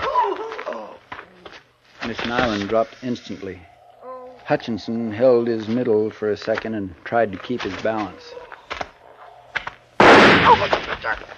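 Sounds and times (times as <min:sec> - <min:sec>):
speech: 0:02.1 - 0:03.7, 0:04.5 - 0:08.4, 0:10.4 - 0:11.3
gunshot sound effect in a radio drama: 0:10.0 - 0:11.0.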